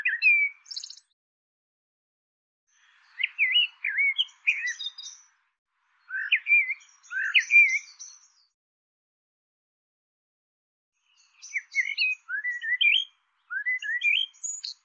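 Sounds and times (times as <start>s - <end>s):
bird twittering chirps: 0.0s - 1.1s, 2.9s - 5.3s, 6.0s - 8.5s, 11.0s - 14.8s.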